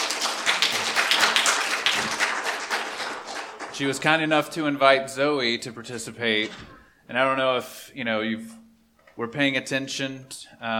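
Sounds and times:
audience applause: 0:00.0 - 0:04.3
speech: 0:03.8 - 0:08.6, 0:09.2 - 0:10.7.

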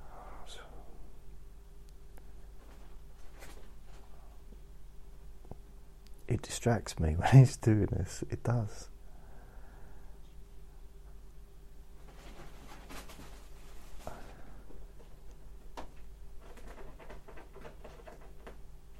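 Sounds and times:
speech: 0:06.3 - 0:08.9
pet scratching at a bathroom door: 0:16.4 - 0:18.6.

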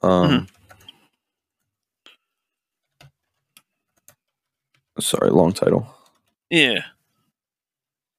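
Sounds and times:
speech: 0:00.0 - 0:00.6, 0:05.0 - 0:07.0
typing on a computer keyboard: 0:00.3 - 0:01.8, 0:02.8 - 0:05.0.

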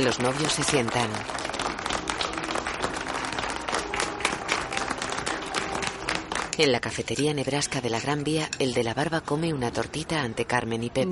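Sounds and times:
speech: 0:00.0 - 0:01.5, 0:06.6 - 0:11.1
crowd applauding: 0:00.0 - 0:06.6.

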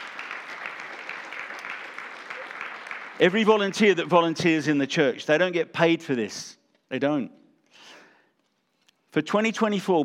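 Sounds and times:
church congregation applause honoring volunteers: 0:00.0 - 0:04.4
speech: 0:03.2 - 0:08.0, 0:09.1 - 0:10.0.

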